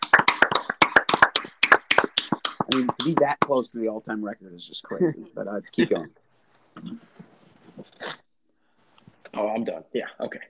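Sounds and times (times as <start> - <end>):
hand clap: 0.0 - 3.6
speech: 2.7 - 6.2, 6.8 - 7.1, 9.4 - 10.4.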